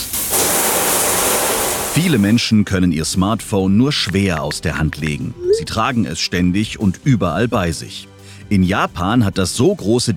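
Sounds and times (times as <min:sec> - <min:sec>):
water spraying from a shower: 0:00.0 - 0:02.4
speech: 0:02.0 - 0:10.1.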